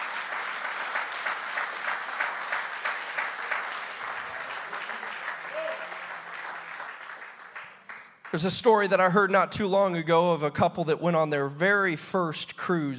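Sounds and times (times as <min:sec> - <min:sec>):
crowd applauding: 0:00.0 - 0:08.9
speech: 0:08.3 - 0:12.9.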